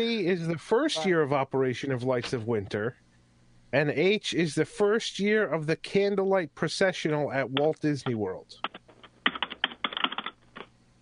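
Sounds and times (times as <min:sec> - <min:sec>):
speech: 0:00.0 - 0:03.0, 0:03.7 - 0:08.7
rapid typing on a computer keyboard: 0:08.6 - 0:10.7.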